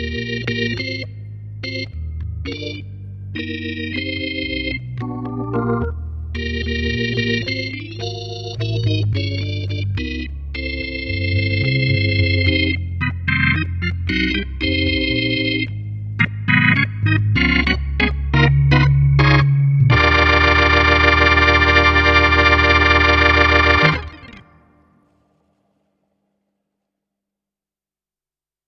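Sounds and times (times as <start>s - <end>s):
jazz ballad on digital piano: 1.6s - 24.3s.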